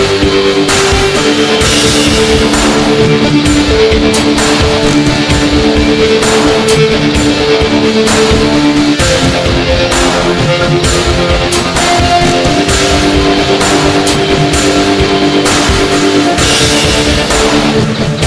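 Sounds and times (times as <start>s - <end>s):
combat music: 0.0s - 18.2s.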